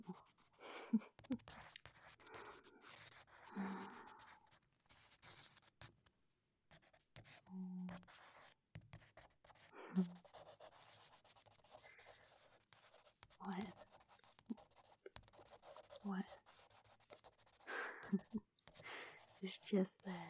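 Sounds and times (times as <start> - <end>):
speech: 0.0 - 1.5, 19.7 - 20.2
pencil drawing lines while sketching someone on a couch: 0.0 - 5.9, 6.7 - 20.2
breathing: 2.2 - 4.3, 11.8 - 12.4, 18.7 - 19.4.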